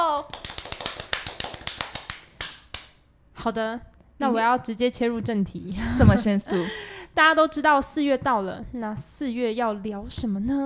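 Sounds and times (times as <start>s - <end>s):
hand clapping: 0.0s - 3.0s
speech: 3.4s - 10.6s.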